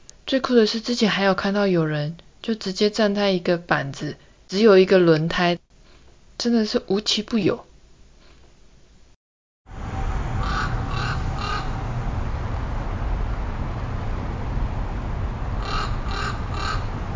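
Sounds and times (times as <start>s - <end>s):
speech: 0.3s - 5.6s, 6.4s - 7.7s
constant roar of road traffic: 9.7s - 17.1s
crows cawing on the street: 10.4s - 11.8s, 15.6s - 16.9s.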